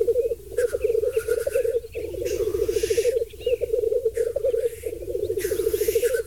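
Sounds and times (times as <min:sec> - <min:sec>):
black grouse bubbling cooing chorus at a mating display: 0:00.0 - 0:06.2
black grouse harsh hissing sneeze-like calls: 0:00.6 - 0:03.2, 0:04.2 - 0:06.2.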